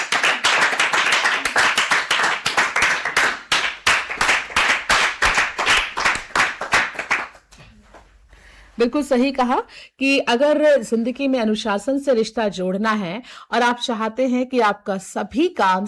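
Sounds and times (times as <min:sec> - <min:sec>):
children clapping: 0:00.0 - 0:07.6
speech: 0:08.8 - 0:15.8.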